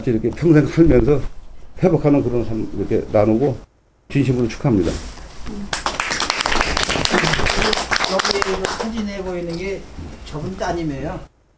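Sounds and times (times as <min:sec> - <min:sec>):
speech: 0:00.0 - 0:05.8, 0:08.2 - 0:11.3
audience applause: 0:05.7 - 0:09.0.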